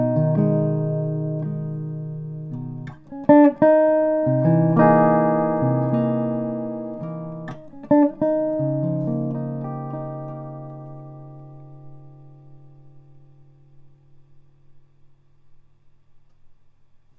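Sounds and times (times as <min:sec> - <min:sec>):
16-inch laminate top and back archtop guitar: 0:00.0 - 0:16.6.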